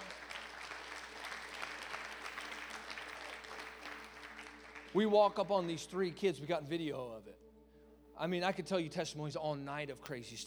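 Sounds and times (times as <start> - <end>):
audience clapping at a religious gathering: 0.0 - 6.2
speech: 4.9 - 7.6, 8.2 - 10.4.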